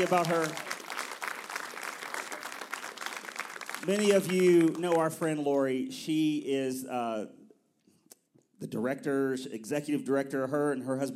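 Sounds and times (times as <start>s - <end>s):
speech: 0.0s - 0.7s, 3.8s - 7.4s, 8.6s - 11.1s
audience hand clapping: 0.0s - 5.7s.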